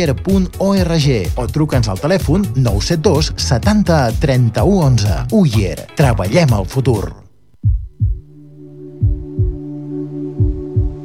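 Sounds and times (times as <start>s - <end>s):
speech: 0.0s - 7.2s
loud heartbeat: 7.6s - 8.3s, 9.0s - 9.6s, 10.4s - 11.0s.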